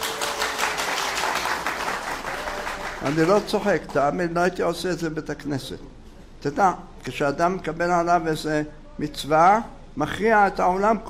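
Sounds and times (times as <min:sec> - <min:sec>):
audience applause: 0:00.0 - 0:04.0
speech: 0:03.0 - 0:11.0.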